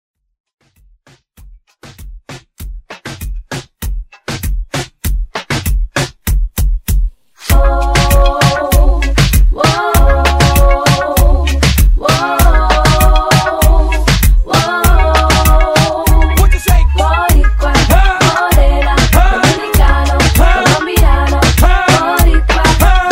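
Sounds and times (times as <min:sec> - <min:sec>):
reggaeton hype music: 0:01.4 - 0:23.0.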